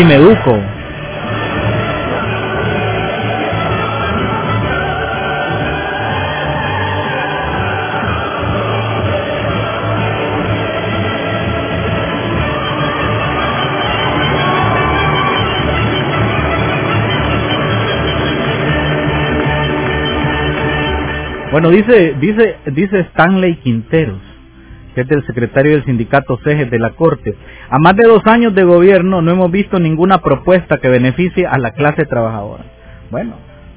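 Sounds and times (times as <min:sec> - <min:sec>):
speech: 0:00.0 - 0:00.8, 0:21.5 - 0:24.3, 0:25.0 - 0:33.5
crowd cheering: 0:00.0 - 0:22.4
anthem music: 0:00.0 - 0:33.7
applause: 0:12.8 - 0:21.6.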